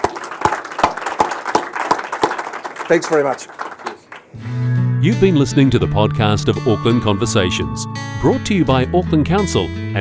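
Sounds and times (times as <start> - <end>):
audience applause: 0.0 - 4.4
speech: 2.9 - 3.7, 4.4 - 10.0.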